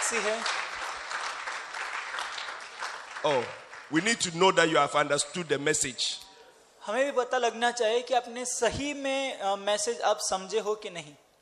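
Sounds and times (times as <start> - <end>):
audience applause: 0.0 - 4.2
speech: 0.1 - 0.6, 3.2 - 6.2, 6.8 - 11.2.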